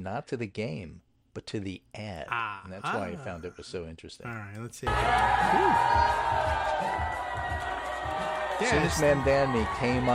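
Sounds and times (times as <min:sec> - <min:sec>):
speech: 0:00.0 - 0:10.1
crowd in a bar cheering: 0:04.8 - 0:10.1.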